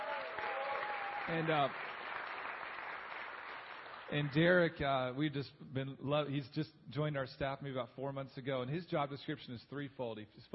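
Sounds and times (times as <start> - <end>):
audience applauding to welcome a new staff member: 0.0 - 4.5
speech: 1.3 - 1.9, 4.1 - 10.5.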